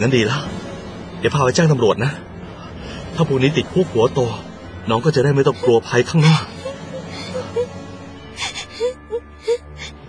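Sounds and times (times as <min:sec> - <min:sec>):
speech: 0:00.0 - 0:00.6, 0:01.2 - 0:02.3, 0:03.2 - 0:06.6
frightened child crying: 0:05.6 - 0:07.8, 0:08.4 - 0:10.0.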